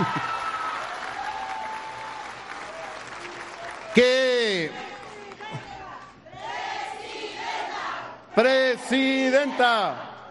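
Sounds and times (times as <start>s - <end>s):
speech: 0.0s - 0.3s, 4.0s - 4.2s, 8.4s - 10.1s
audience applause: 0.0s - 5.6s.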